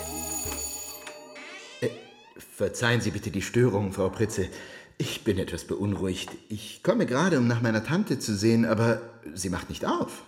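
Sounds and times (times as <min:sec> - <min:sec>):
doorbell ringing: 0:00.0 - 0:02.4
speech: 0:01.8 - 0:02.0, 0:02.6 - 0:10.2.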